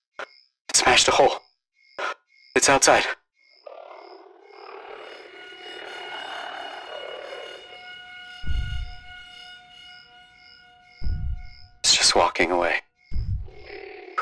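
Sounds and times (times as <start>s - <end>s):
speech: 0.9s - 1.4s, 2.6s - 3.2s, 12.4s - 12.8s
spaceship oxygen alarm: 4.2s - 12.2s, 13.1s - 14.2s.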